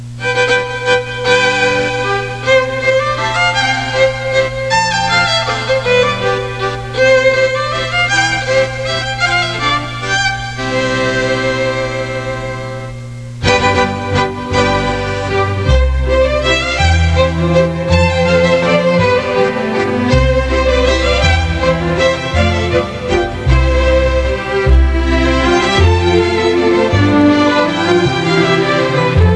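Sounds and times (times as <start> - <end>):
waltz music: 0.0 - 29.3.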